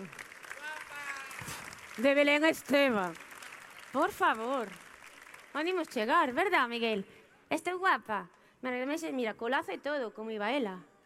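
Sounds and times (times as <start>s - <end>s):
audience applause: 0.0s - 6.3s
speech: 1.4s - 3.2s, 3.9s - 4.8s, 5.5s - 10.9s.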